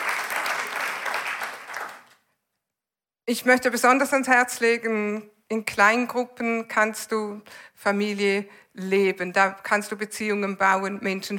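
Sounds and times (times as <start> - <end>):
audience applause: 0.0 - 2.2
speech: 3.3 - 11.3.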